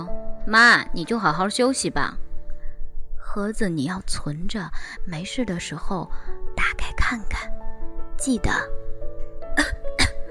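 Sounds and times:
speech: 0.5s - 2.2s, 3.4s - 7.6s, 8.2s - 8.8s
person coughing: 9.6s - 10.3s.

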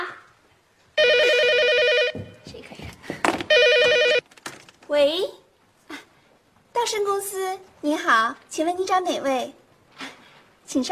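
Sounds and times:
telephone ringing: 1.0s - 2.4s, 3.5s - 4.2s
speech: 5.0s - 5.4s, 6.9s - 9.6s, 10.7s - 10.9s.

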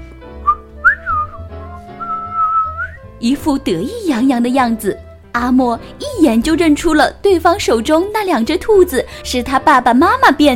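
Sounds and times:
man whistling a tune: 0.4s - 3.0s
speech: 3.2s - 10.5s.

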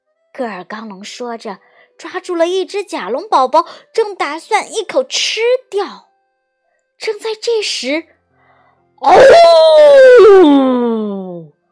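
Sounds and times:
speech: 0.4s - 6.1s, 7.0s - 8.1s, 9.0s - 10.8s
person imitating a Tyrannosaurus roar: 9.0s - 11.5s.

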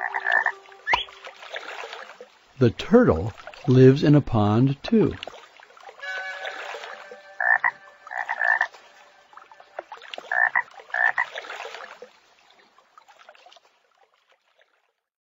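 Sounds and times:
buzzing chorus of other frogs: 0.0s - 1.1s, 6.0s - 8.8s, 9.4s - 11.4s
frog croaking in a pond: 0.0s - 1.2s, 6.0s - 11.4s
speech: 2.6s - 5.3s.

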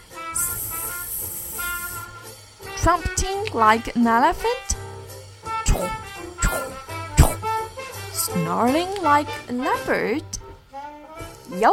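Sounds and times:
boa constrictor hissing: 0.1s - 2.4s, 5.7s - 7.8s
speech: 2.8s - 4.8s, 5.7s - 6.0s, 8.3s - 10.4s, 11.5s - 11.7s.

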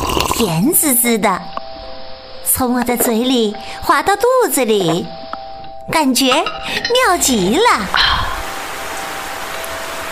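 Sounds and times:
speech: 0.4s - 1.6s, 2.6s - 5.2s, 5.9s - 8.2s
rain falling: 7.2s - 10.1s.

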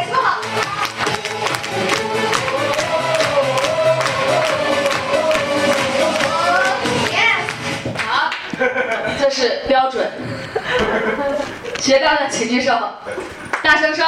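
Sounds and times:
audience applause: 0.6s - 8.1s
laughter: 8.4s - 9.3s, 10.2s - 11.8s
speech: 10.9s - 14.0s.

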